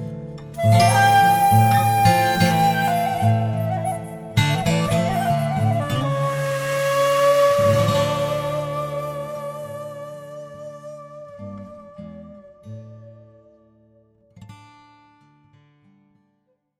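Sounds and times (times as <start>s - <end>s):
blues music: 0.6s - 12.8s.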